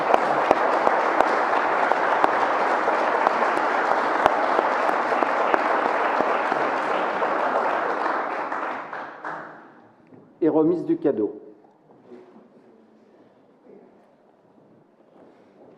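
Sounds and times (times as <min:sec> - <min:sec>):
audience applause: 0:00.0 - 0:09.8
speech: 0:10.5 - 0:11.4.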